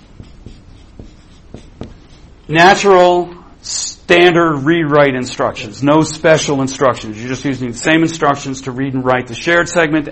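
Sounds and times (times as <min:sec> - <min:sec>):
handwriting strokes with pen or chalk: 0:00.0 - 0:03.1
speech: 0:02.5 - 0:10.1.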